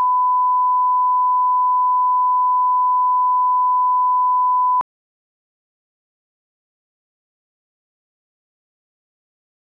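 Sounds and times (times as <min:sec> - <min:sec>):
1kHz sine tone on left channel: 0:00.0 - 0:04.8.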